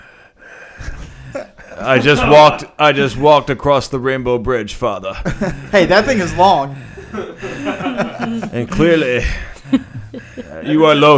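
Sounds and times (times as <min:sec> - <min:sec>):
voice imitating Thor panting out of breath: 0:00.0 - 0:01.9, 0:06.7 - 0:07.9, 0:09.2 - 0:10.6
speech: 0:01.3 - 0:09.9, 0:10.6 - 0:11.1
laughter: 0:01.4 - 0:02.7, 0:05.1 - 0:11.1.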